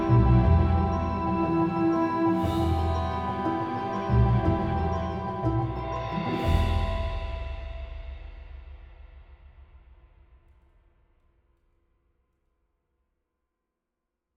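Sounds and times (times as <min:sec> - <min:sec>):
mysterious orchestral music: 0:00.0 - 0:07.9.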